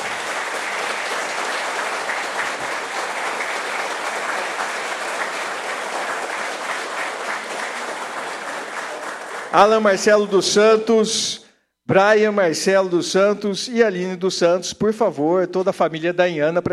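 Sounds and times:
audience applause: 0:00.0 - 0:10.3
speech: 0:09.5 - 0:16.7.

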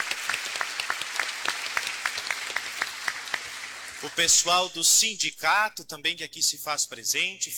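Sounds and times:
audience applause: 0:00.0 - 0:04.3
speech: 0:04.0 - 0:07.5.

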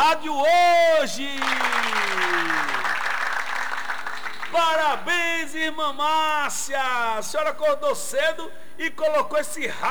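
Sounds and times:
speech: 0:00.0 - 0:02.8, 0:04.5 - 0:09.8
applause in honour of a church sister: 0:01.2 - 0:05.1.

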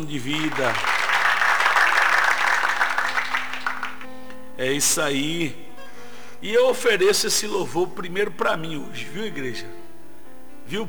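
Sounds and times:
speech: 0:00.0 - 0:01.0, 0:04.6 - 0:05.6, 0:06.4 - 0:09.8, 0:10.7 - 0:10.8
audience applauding: 0:00.0 - 0:04.3.

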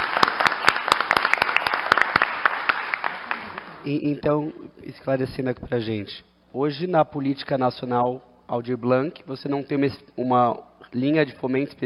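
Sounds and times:
round of applause: 0:00.0 - 0:03.8
speech: 0:03.8 - 0:11.8.

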